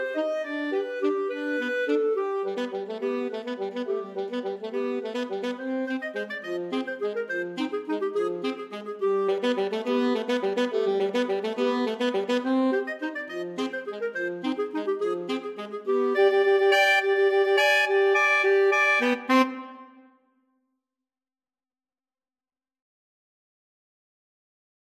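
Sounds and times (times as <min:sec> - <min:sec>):
clarinet and saxophone duet: 0:00.0 - 0:20.0.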